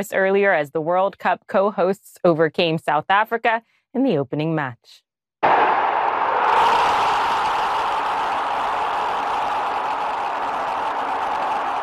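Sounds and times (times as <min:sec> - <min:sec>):
speech: 0:00.0 - 0:05.0
crowd cheering after a football goal: 0:05.4 - 0:11.8.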